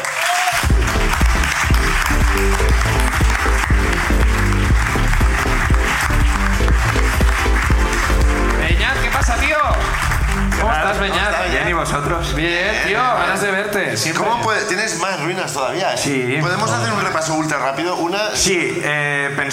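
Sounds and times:
audience applause: 0.0s - 11.8s
speech: 11.9s - 19.5s.

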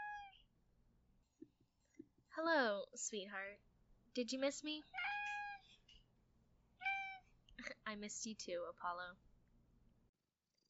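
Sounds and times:
cat meowing: 0.0s - 0.4s, 4.9s - 5.8s, 6.8s - 7.3s
speech: 2.4s - 5.1s, 7.9s - 9.2s.

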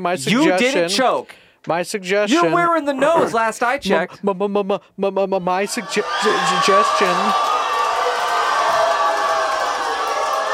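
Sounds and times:
speech: 0.0s - 7.6s
large crowd cheering: 5.5s - 10.5s.

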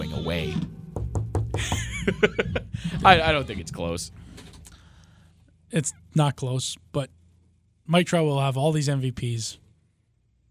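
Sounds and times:
speech: 0.2s - 0.8s, 1.6s - 2.4s, 3.0s - 4.2s, 5.7s - 7.2s, 7.9s - 9.6s
knocking on wood: 0.6s - 3.4s
laughter: 1.6s - 4.1s.

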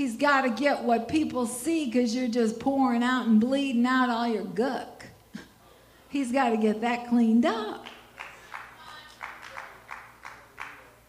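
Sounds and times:
speech: 0.0s - 5.0s, 6.1s - 7.9s
two people clapping: 7.8s - 11.0s.

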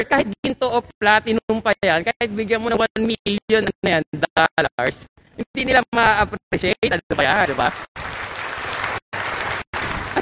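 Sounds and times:
speech: 0.0s - 8.4s
audience clapping: 7.1s - 10.2s.

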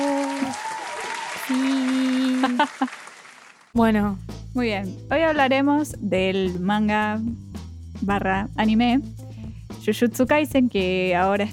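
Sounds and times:
audience clapping: 0.0s - 3.8s
laughter: 1.5s - 3.0s
speech: 2.4s - 3.0s, 3.7s - 7.4s, 8.0s - 9.2s, 9.8s - 11.5s.

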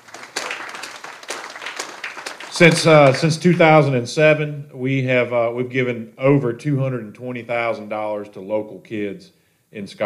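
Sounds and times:
audience clapping: 0.0s - 3.5s
speech: 2.6s - 10.0s.

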